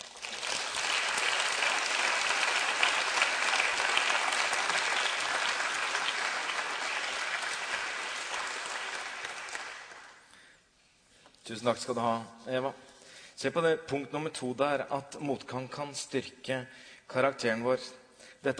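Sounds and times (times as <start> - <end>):
audience applause: 0.0 - 10.3
speech: 11.5 - 18.5.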